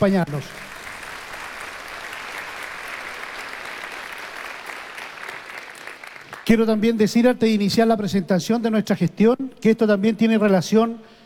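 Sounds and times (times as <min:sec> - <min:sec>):
speech: 0:00.0 - 0:00.7, 0:06.4 - 0:11.2
audience applause: 0:00.3 - 0:06.5.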